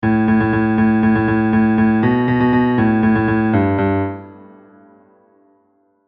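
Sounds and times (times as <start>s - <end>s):
two-bar bass line: 0.0s - 4.4s.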